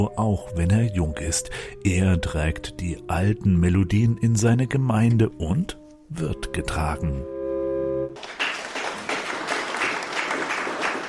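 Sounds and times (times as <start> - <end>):
speech: 0.0 - 7.4
applause in a church: 8.2 - 11.0.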